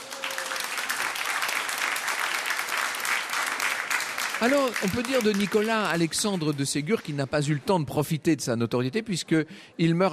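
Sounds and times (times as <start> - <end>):
crowd applauding: 0.0 - 7.3
speech: 4.4 - 10.1.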